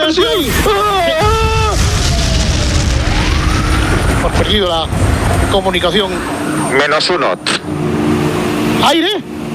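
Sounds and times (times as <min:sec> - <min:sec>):
staged bomb explosion sound effect: 0:00.2 - 0:07.0
speech: 0:04.5 - 0:07.8, 0:08.8 - 0:09.3.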